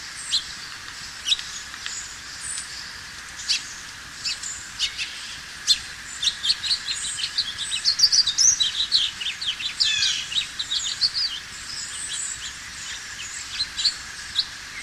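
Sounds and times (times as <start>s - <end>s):
house finch: 3.4s - 14.8s.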